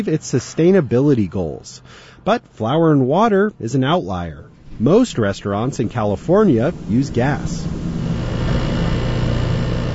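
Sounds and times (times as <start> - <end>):
speech: 0.0 - 7.9
equipment drone as sensors are calibrated in a university emissions lab: 4.4 - 9.9.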